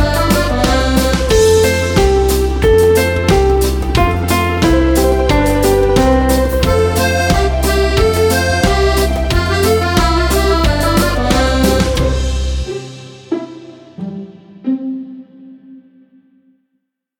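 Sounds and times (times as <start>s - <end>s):
karaoke singing: 0.0s - 12.7s.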